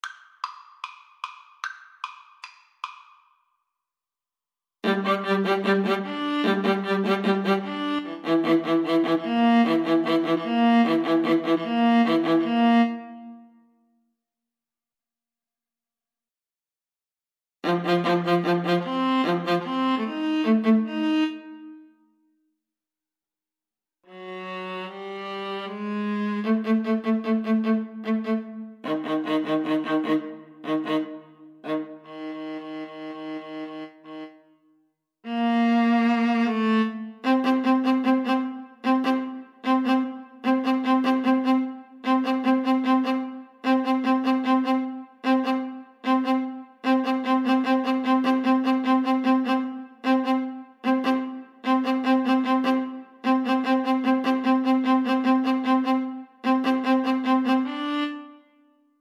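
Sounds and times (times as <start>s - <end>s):
viola duet: 4.8s - 13.4s, 17.6s - 21.8s, 24.1s - 34.5s, 35.3s - 58.6s.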